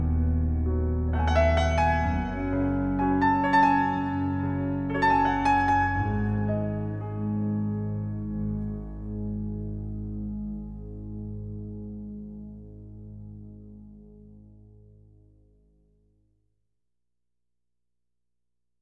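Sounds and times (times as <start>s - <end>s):
Celtic Christmas music: 0.0s - 11.7s.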